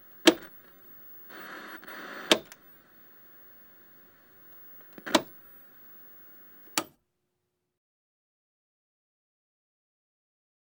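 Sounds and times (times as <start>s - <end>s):
television hissing when switched on: 0.0s - 6.9s.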